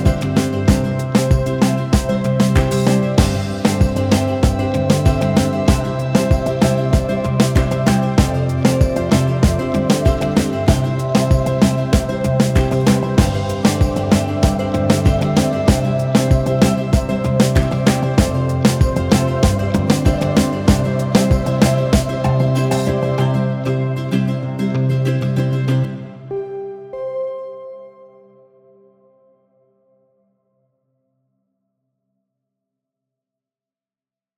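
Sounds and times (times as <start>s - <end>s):
summery underscore music: 0.0s - 27.4s.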